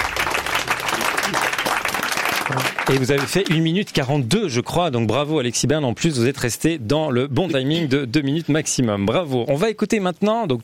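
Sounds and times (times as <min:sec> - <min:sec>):
audience applauding: 0:00.0 - 0:03.9
speech: 0:02.9 - 0:10.6.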